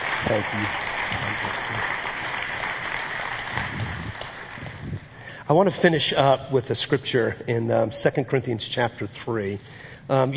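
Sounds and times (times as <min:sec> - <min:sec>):
crowd clapping: 0:00.0 - 0:05.2
speech: 0:00.3 - 0:02.1, 0:05.5 - 0:10.3.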